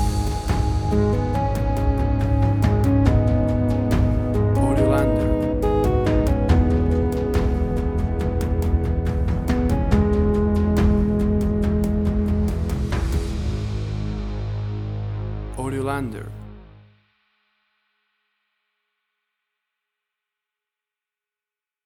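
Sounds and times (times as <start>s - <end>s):
slow atmospheric tension music: 0.0s - 16.9s.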